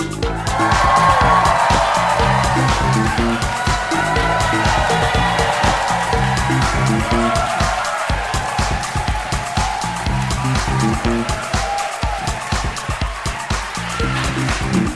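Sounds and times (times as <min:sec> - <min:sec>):
audience whooping and cheering at a live stage show in Mountford Hall, Liverpool: 0:00.2 - 0:14.9.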